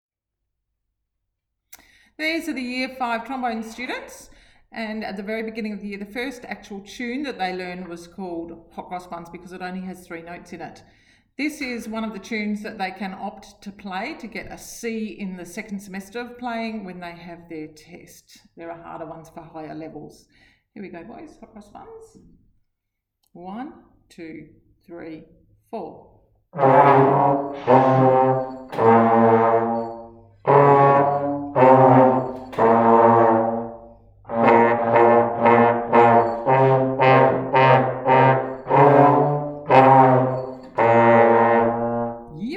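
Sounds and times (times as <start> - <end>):
trombone melody: 26.6 - 42.4.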